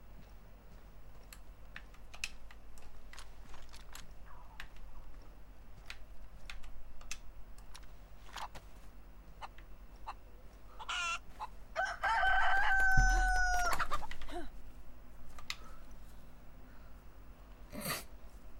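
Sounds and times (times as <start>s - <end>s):
scattered sharp clicks and taps: 1.2s - 7.9s
rooster crowing: 10.8s - 14.0s.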